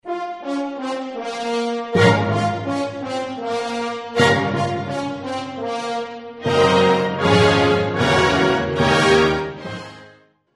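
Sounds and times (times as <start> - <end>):
piano concerto: 0.2 - 10.1.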